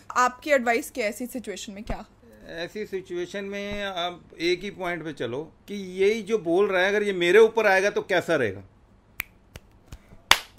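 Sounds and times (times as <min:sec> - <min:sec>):
speech: 0:00.1 - 0:08.7
hands clapping: 0:09.2 - 0:10.5.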